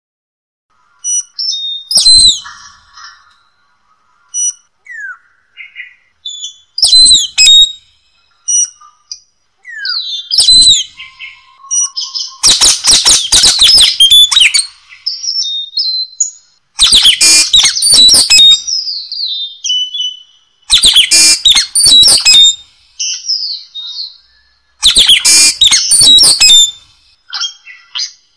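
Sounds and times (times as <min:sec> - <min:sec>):
Lory song of high whistled notes: 0:01.0 - 0:03.2, 0:04.4 - 0:07.8, 0:09.6 - 0:28.2.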